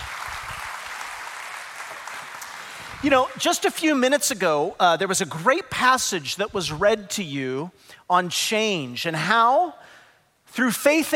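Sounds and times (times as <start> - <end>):
church congregation applauding to welcome first-time guests: 0.0 - 4.0
speech: 3.0 - 9.9, 10.5 - 11.1.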